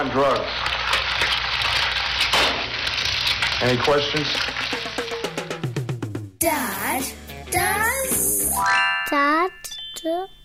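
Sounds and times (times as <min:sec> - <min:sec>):
speech: 0:00.0 - 0:01.3, 0:03.6 - 0:05.2, 0:06.4 - 0:10.4
egg sizzling in hot oil in a frying pan: 0:00.0 - 0:06.0.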